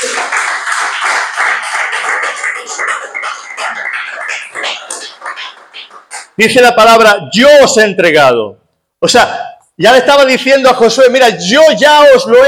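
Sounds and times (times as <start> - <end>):
audience applause: 0.0 - 6.4
speech: 6.4 - 12.4.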